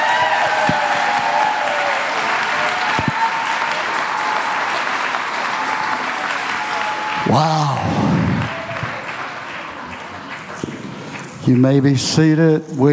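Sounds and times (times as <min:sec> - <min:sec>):
audience clapping: 0:00.0 - 0:12.4
speech: 0:07.3 - 0:08.0, 0:11.5 - 0:12.9.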